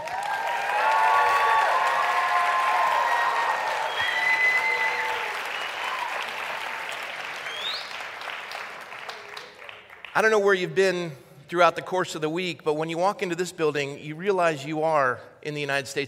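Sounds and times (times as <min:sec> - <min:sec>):
cheers and whistles: 0:00.0 - 0:08.0
crowd clapping: 0:00.0 - 0:10.4
speech: 0:10.2 - 0:16.0.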